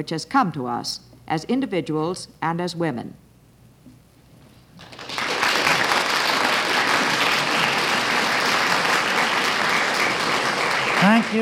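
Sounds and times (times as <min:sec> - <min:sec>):
speech: 0:00.0 - 0:03.2, 0:11.1 - 0:11.4
audience applause: 0:04.8 - 0:11.4.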